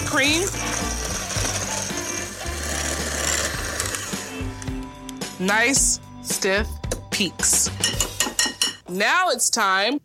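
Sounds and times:
mixer whipping heavy cream: 0.0 - 4.7
speech: 0.1 - 1.0, 5.4 - 8.0, 8.9 - 10.0.

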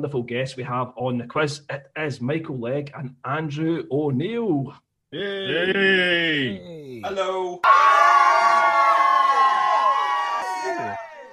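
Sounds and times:
speech: 0.0 - 7.8
crowd cheering sound effect from a soundboard: 7.6 - 11.3.

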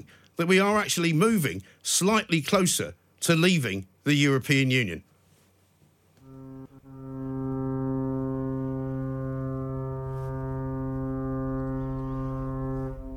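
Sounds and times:
speech: 0.4 - 5.1
horn hooter siren blast: 6.2 - 13.1.

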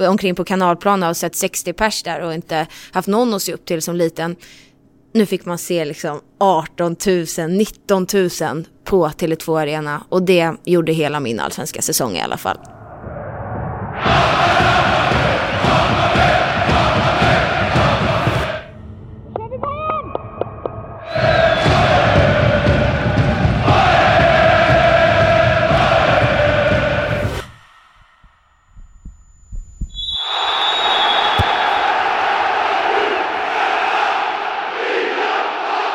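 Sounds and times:
speech: 0.0 - 12.8
crowd cheering and chanting at a women's Allsvenskan football match: 14.0 - 18.7, 21.0 - 27.6, 30.2 - 35.9.

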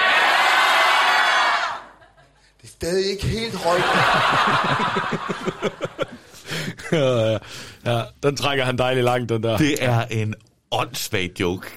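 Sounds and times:
large crowd shouting: 0.0 - 2.0
speech: 2.8 - 11.7
laughter: 3.5 - 7.4.

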